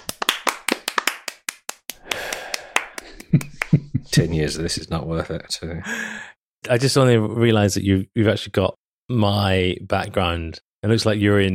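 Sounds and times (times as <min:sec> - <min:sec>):
hand clapping: 0:00.0 - 0:03.9
speech: 0:03.3 - 0:03.6, 0:04.2 - 0:11.5.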